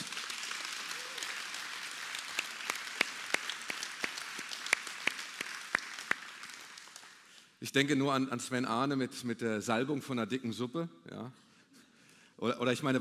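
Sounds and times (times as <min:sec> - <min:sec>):
audience applause: 0:00.0 - 0:07.4
speech: 0:07.6 - 0:11.4, 0:12.4 - 0:12.9.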